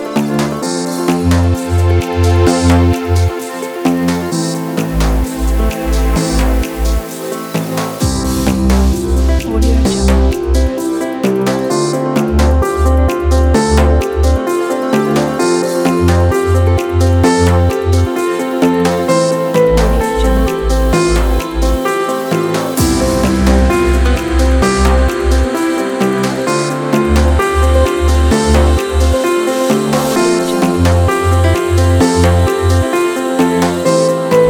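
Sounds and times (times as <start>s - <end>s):
inspirational corporate music kit: 0.0s - 34.4s.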